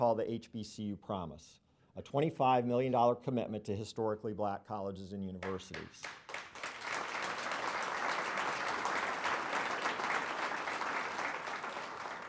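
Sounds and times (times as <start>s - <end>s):
speech: 0.0s - 6.2s
audience applause: 6.0s - 12.2s.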